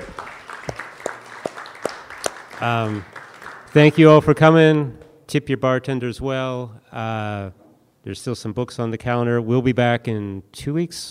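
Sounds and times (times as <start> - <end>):
round of applause for open mic participants: 0.0 - 4.4
speech: 2.6 - 11.0.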